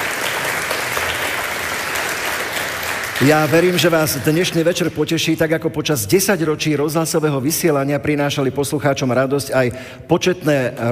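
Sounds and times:
audience applause: 0:00.0 - 0:04.2
speech: 0:03.2 - 0:10.9.

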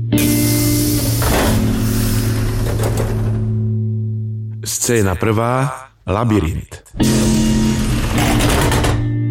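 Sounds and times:
Vienna subway train stopping at a platform: 0:00.2 - 0:03.7
subway train doors rattling open: 0:00.2 - 0:03.7, 0:07.0 - 0:09.2
speech: 0:04.7 - 0:07.5.

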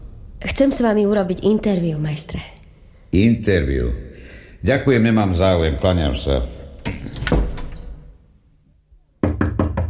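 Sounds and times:
speech: 0:00.4 - 0:07.0
loud knocking on a door: 0:09.2 - 0:09.8.

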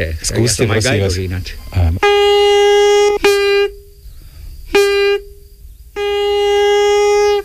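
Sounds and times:
speech: 0:00.0 - 0:02.8
bark whistle pipe blasts: 0:02.0 - 0:03.9, 0:04.7 - 0:05.4, 0:06.0 - 0:07.4.

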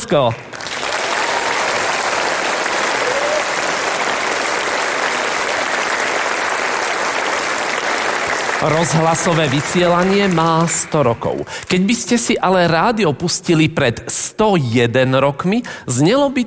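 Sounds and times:
speech: 0:00.1 - 0:00.5, 0:08.6 - 0:16.4
audience applause: 0:00.2 - 0:11.5.

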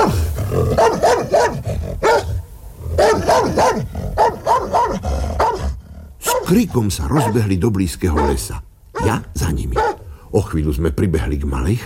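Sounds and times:
dog barking fiercely: 0:00.7 - 0:02.4, 0:03.0 - 0:10.1
speech: 0:06.5 - 0:11.8.

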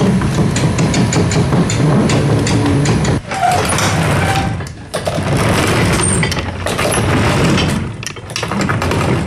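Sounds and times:
rotating observatory dome motor rumbling and whirring: 0:00.0 - 0:08.0
rattling metallic clatter: 0:00.0 - 0:09.2.

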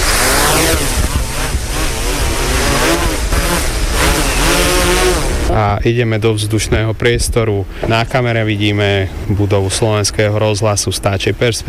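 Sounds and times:
drone propellers spinning up: 0:00.0 - 0:05.8
speech: 0:05.6 - 0:11.6.

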